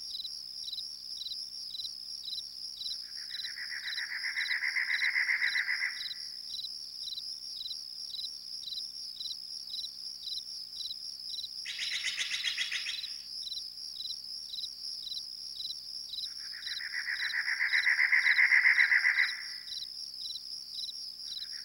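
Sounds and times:
crickets chirping: 0.0s - 21.6s
night critters: 2.8s - 6.3s, 11.6s - 21.6s.

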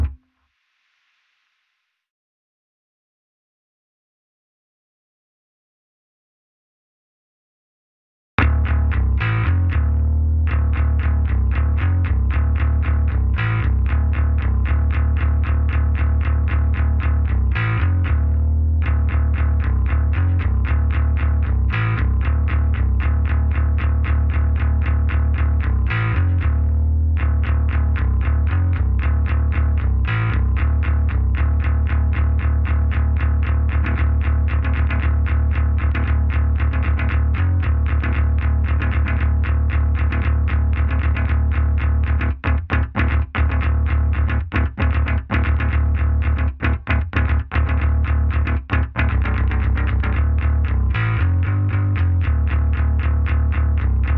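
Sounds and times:
bass: 0.0s - 0.4s, 8.4s - 54.1s.

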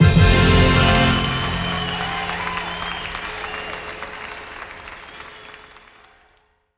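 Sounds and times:
happy bell: 0.0s - 2.6s.

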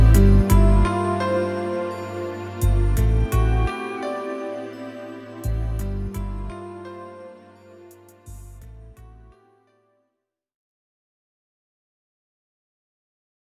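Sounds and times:
tension music: 0.0s - 9.3s.

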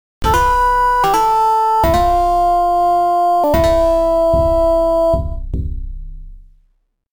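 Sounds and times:
victorious battle music: 0.2s - 5.4s.

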